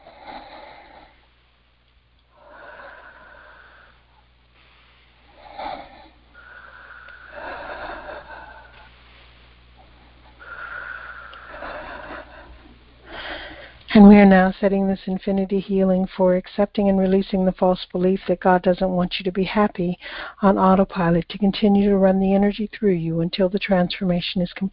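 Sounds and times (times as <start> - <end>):
slow deep breaths during a guided healing session: 2.3 - 13.9, 20.0 - 20.4
speech: 14.0 - 24.7.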